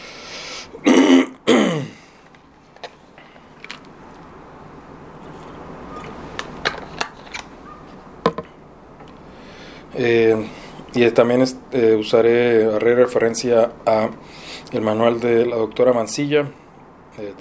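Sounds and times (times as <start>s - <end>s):
lecturer clearing throat during a class on private international law: 0.8s - 2.0s
speech: 10.0s - 16.6s, 17.2s - 17.3s.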